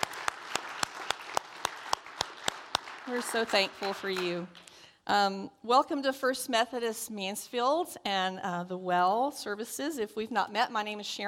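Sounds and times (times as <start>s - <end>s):
audience applause: 0.0s - 4.7s
speech: 3.1s - 11.2s.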